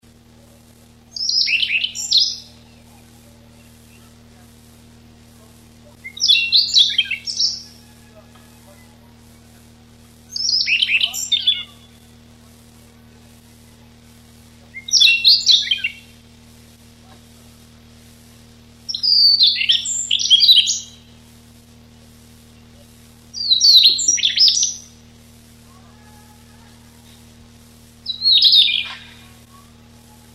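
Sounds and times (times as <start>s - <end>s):
low hum: 0.0s - 30.3s
Siberian rubythroat song: 1.1s - 4.2s, 6.0s - 9.5s, 10.3s - 12.1s, 14.8s - 16.1s, 18.9s - 21.0s, 23.4s - 24.9s, 28.0s - 30.3s.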